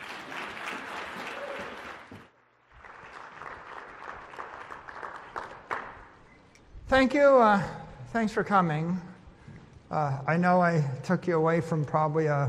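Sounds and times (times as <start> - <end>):
audience applause welcoming a speaker: 0.0 - 6.4
speech: 6.9 - 9.1, 9.9 - 12.4.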